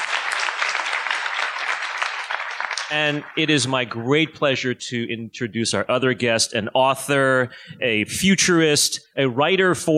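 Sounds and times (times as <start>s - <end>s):
audience applause at a live science talk show: 0.0s - 4.0s
speech: 2.9s - 9.9s.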